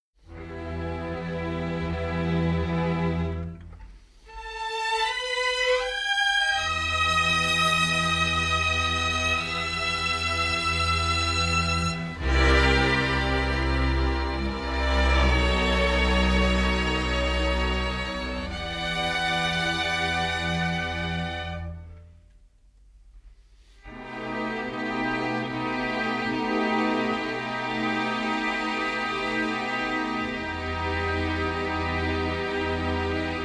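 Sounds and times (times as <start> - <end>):
instrumental music: 0.2 - 33.4.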